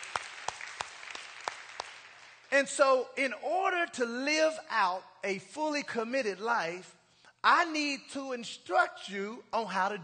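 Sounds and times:
audience clapping: 0.0 - 2.6
speech: 2.5 - 10.0.

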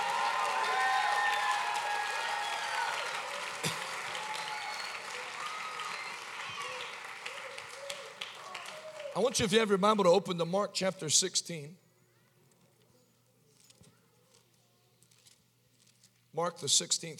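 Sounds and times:
audience hand clapping: 0.0 - 9.6
speech: 9.2 - 11.8, 16.4 - 17.1.

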